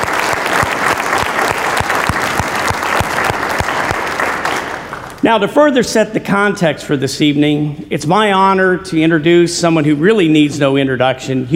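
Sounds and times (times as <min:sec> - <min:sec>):
crowd applauding: 0:00.0 - 0:05.2
speech: 0:05.3 - 0:11.5.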